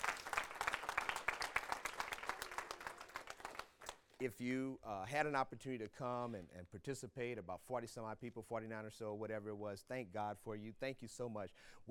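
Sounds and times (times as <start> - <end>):
room full of people applauding: 0.0 - 4.2
speech: 4.2 - 11.8.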